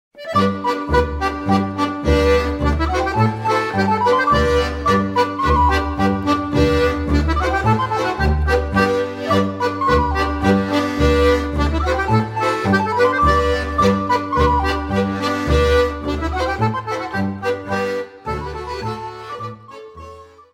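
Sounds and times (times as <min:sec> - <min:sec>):
Belgian polka music: 0:00.2 - 0:20.5.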